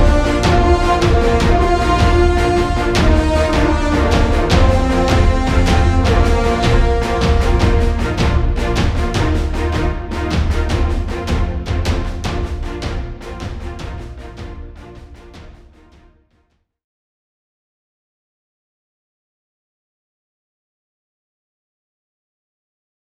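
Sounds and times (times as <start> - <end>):
grand dramatic orchestral music for award speeches: 0.0 - 16.0.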